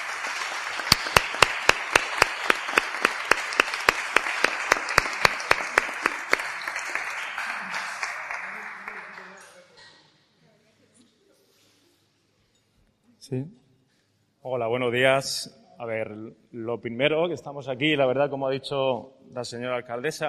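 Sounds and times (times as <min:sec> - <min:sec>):
sharp steady clap: 0:00.0 - 0:09.5
audience applause: 0:00.0 - 0:09.7
speech: 0:13.3 - 0:13.6, 0:14.4 - 0:20.2.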